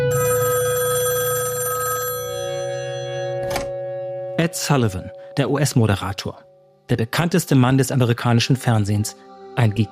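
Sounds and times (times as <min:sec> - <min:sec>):
telephone bell ringing: 0:00.1 - 0:05.4
speech: 0:04.5 - 0:09.9.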